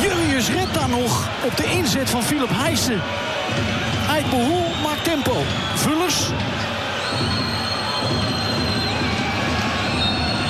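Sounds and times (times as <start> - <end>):
speech: 0.8 - 7.3
referee's final whistle: 4.2 - 6.4, 7.0 - 10.4.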